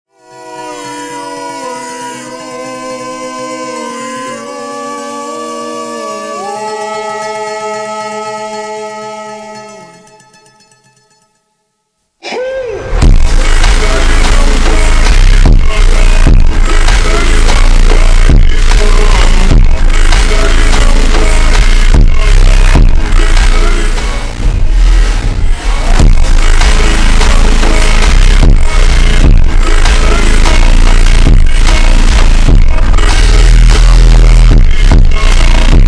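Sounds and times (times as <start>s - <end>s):
ultra slowed bass with reverb: 12.6s - 35.8s.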